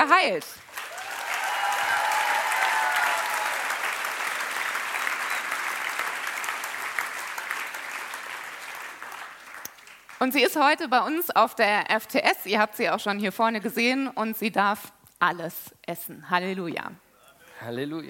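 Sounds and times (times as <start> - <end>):
speech: 0.2 - 0.7, 10.2 - 17.0, 17.6 - 18.0
audience applause from a sizable crowd: 0.6 - 10.2
faint cheers: 0.8 - 3.9.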